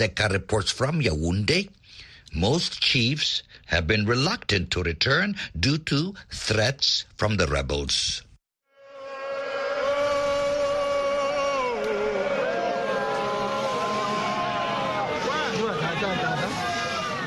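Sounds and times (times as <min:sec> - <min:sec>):
speech: 0:00.0 - 0:08.3
crowd shouting and applauding: 0:09.4 - 0:17.2.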